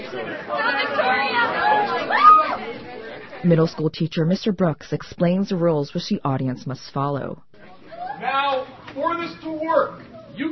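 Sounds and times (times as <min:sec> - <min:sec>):
middle school students chattering in commons: 0:00.0 - 0:03.5
speech: 0:00.1 - 0:01.0, 0:03.4 - 0:07.5, 0:08.2 - 0:10.5.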